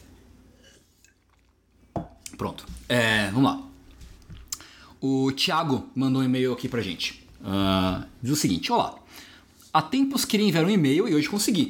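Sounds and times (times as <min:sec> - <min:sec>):
person drinking a sip of water: 0:00.5 - 0:02.4, 0:03.8 - 0:04.9
speech: 0:02.4 - 0:03.7, 0:05.0 - 0:11.6.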